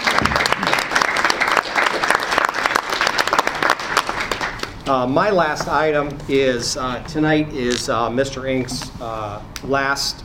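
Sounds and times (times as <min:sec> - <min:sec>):
audience applause: 0:00.0 - 0:04.7
speech: 0:04.9 - 0:10.2.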